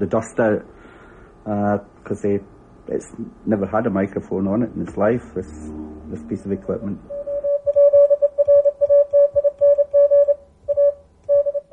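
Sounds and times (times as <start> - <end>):
speech: 0.0 - 0.8, 1.4 - 7.2
faint low rumble: 1.8 - 11.7
Morse code tone from radio: 5.7 - 11.7.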